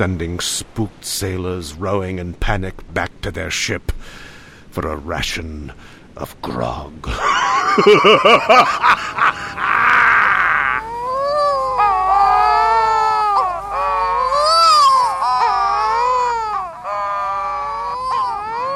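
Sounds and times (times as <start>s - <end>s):
speech: 0.0s - 9.4s
laughter: 7.1s - 10.6s
wedge-tailed shearwater courtship wailing: 8.5s - 18.7s.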